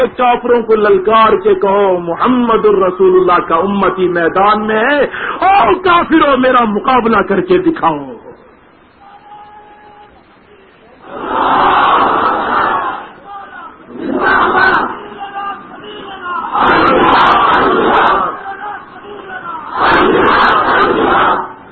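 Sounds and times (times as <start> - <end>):
speech: 0.0 - 8.2
crowd chanting a religious slogan at a gathering in Shorkot: 11.0 - 21.6.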